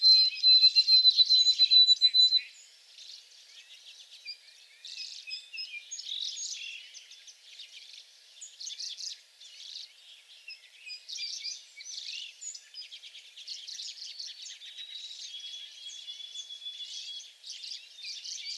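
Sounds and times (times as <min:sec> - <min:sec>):
White-throated sparrow whistled song in back shrubs: 0:00.0 - 0:18.5.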